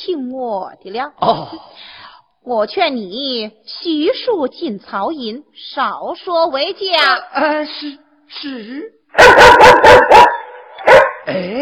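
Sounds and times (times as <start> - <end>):
speech: 0.0 - 10.4, 11.2 - 11.6
dog barking: 9.2 - 11.3.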